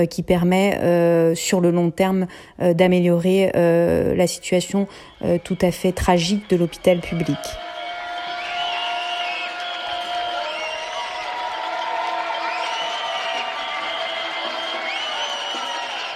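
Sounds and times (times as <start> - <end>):
speech: 0.0 - 7.7
crowd clapping and cheering for health workers: 4.8 - 16.1
whistle-like tones: 4.8 - 16.1.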